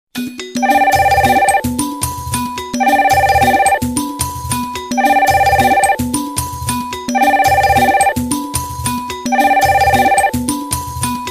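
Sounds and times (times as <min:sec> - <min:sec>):
music: 0:00.1 - 0:11.2
bell ringing: 0:00.6 - 0:01.7, 0:02.8 - 0:03.9, 0:04.9 - 0:06.2, 0:07.1 - 0:08.3, 0:09.3 - 0:10.4.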